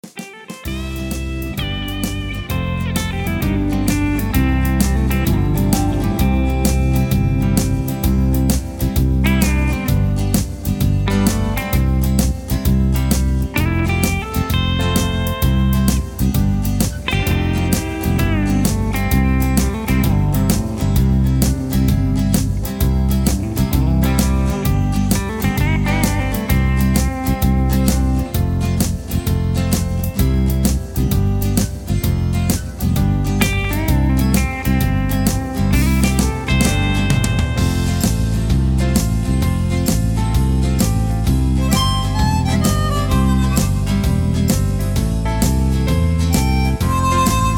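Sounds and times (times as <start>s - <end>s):
instrumental music without leads: 0.0s - 47.5s.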